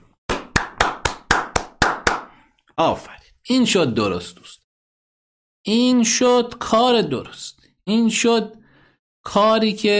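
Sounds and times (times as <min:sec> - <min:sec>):
one person clapping hands in honour of someone: 0:00.3 - 0:02.4
speech: 0:02.8 - 0:04.6, 0:05.6 - 0:08.6, 0:09.2 - 0:09.9.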